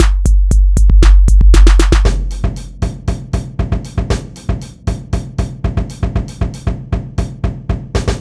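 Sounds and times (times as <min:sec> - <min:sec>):
drum groove at 117 bpm: 0:00.0 - 0:08.1.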